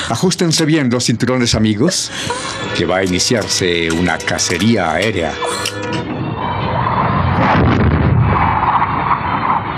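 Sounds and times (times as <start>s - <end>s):
speech: 0.1s - 6.1s
fighter jets breaking the sound barrier: 5.3s - 9.7s.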